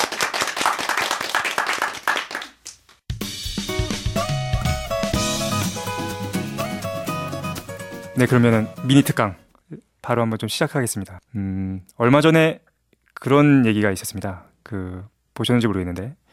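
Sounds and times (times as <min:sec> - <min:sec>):
audience clapping: 0:00.0 - 0:03.0
music with steady tones and a beat: 0:03.1 - 0:09.0
speech: 0:08.2 - 0:16.3.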